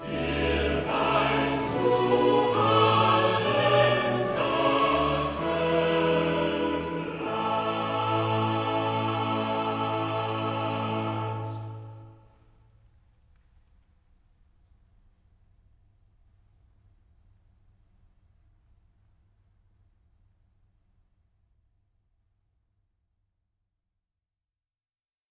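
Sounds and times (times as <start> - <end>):
choir singing: 0.0 - 12.2.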